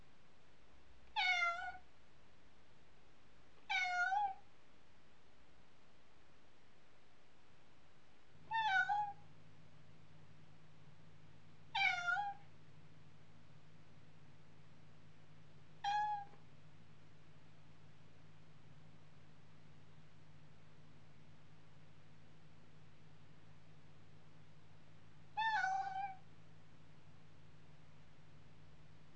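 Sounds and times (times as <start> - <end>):
cat meowing: 1.2 - 1.8, 3.7 - 4.4, 8.5 - 9.2, 11.7 - 12.5, 15.8 - 16.4, 25.4 - 26.2.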